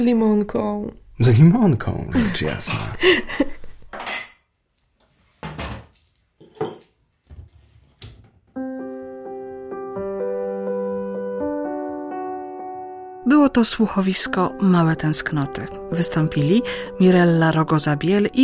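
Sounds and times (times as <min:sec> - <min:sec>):
speech: 0:00.0 - 0:03.5, 0:13.5 - 0:18.4
dishes and cutlery clinking while serving dinner: 0:03.9 - 0:04.5, 0:05.4 - 0:07.0
sustained musical chord: 0:08.6 - 0:18.4.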